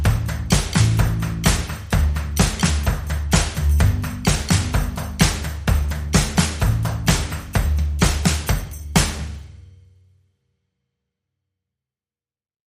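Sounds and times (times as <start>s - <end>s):
drums: 0.0s - 9.8s
bass: 0.0s - 10.2s.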